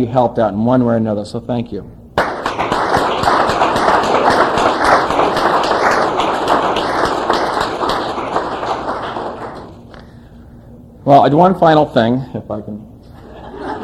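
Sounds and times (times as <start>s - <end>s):
speech: 0.0s - 2.0s, 11.1s - 12.9s
crowd applauding: 2.2s - 9.9s
laughter: 13.2s - 13.8s.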